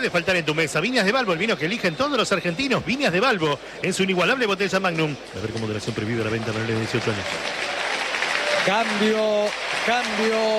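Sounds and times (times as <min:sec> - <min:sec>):
speech: 0:00.0 - 0:07.6, 0:08.7 - 0:10.5
stadium standing ovation: 0:00.0 - 0:10.5.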